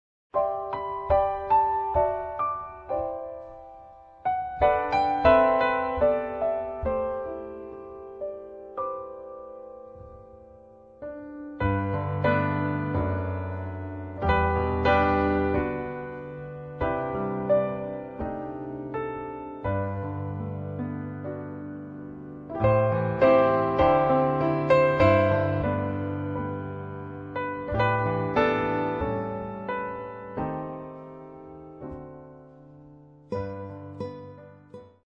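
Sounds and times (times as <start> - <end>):
Christmas song: 0.4 - 35.0.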